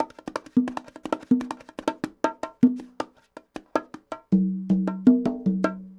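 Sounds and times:
Latin bongos: 0:00.0 - 0:05.9
Latin congas: 0:00.0 - 0:05.9.

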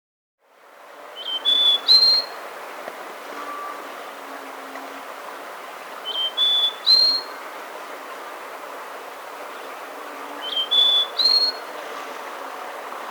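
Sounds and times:
slaty-backed nightingale-thrush whistling in South America: 0:01.2 - 0:02.4, 0:06.0 - 0:07.4, 0:10.3 - 0:11.7.

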